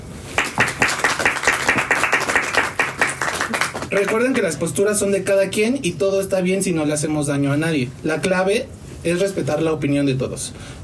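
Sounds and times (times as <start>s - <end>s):
applause: 0.3s - 4.6s
speech: 3.9s - 10.8s.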